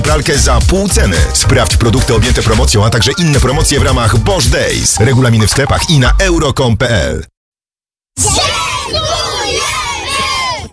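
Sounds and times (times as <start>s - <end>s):
speech: 0.2s - 7.3s, 8.2s - 8.6s
crowd of children shouting thanks: 8.2s - 10.7s.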